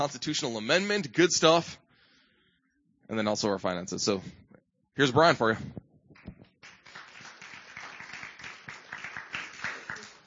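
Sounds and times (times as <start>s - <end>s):
speech: 0.0s - 1.8s, 3.1s - 4.4s, 5.0s - 5.8s
audience clapping: 6.2s - 10.2s.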